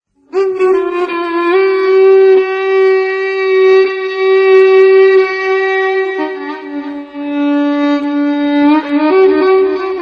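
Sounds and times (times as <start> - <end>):
saz: 0.1 - 10.0.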